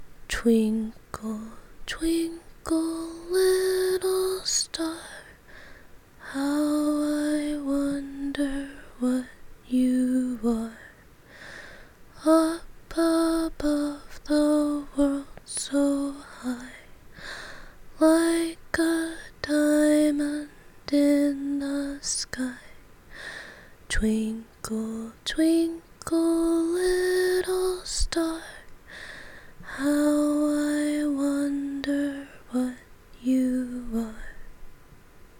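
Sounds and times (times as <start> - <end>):
person singing a short lullaby: 0.0 - 34.5.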